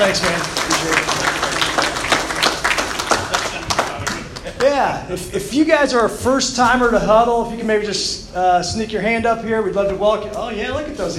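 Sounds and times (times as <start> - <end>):
speech: 0.0 - 1.1, 4.7 - 11.1
audience applauding a guest from the Y: 0.0 - 4.8.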